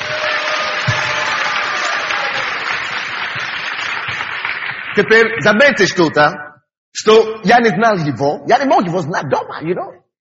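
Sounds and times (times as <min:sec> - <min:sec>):
audience applause: 0:00.0 - 0:06.0
speech: 0:05.0 - 0:10.0.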